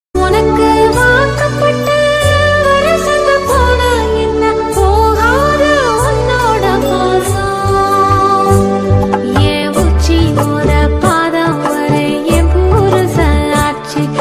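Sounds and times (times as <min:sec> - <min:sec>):
Tamil background music: 0:00.2 - 0:14.1.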